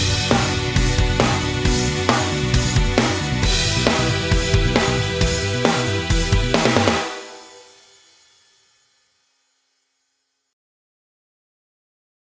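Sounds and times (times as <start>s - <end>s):
karaoke singing: 0.0s - 7.2s.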